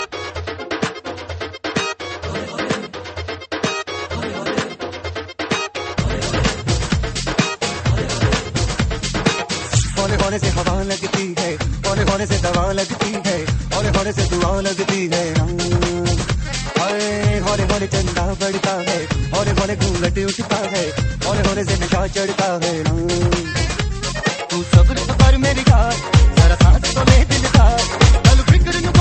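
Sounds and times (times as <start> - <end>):
dhol mix ringtone: 5.5 - 29.0.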